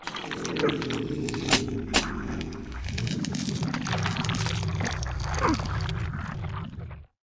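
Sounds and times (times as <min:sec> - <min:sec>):
monster sound: 0:00.0 - 0:07.1.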